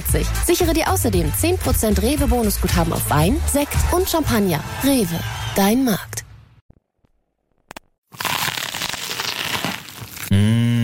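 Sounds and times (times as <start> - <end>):
speech: 0.1 - 6.3
crunching as crispy food is bitten and chewed: 8.1 - 10.3.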